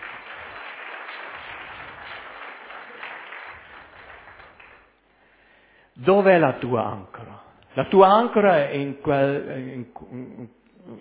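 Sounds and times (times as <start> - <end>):
audience applause: 0.0 - 4.9
speech: 6.0 - 11.0.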